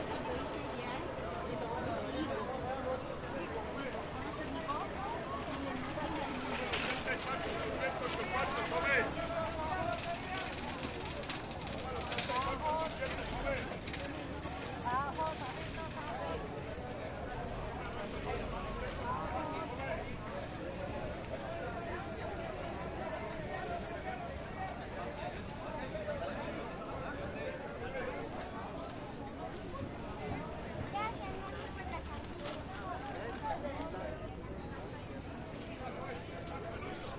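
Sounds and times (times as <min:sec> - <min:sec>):
walking through a fair at Plaza Viquez: 0:00.0 - 0:37.1.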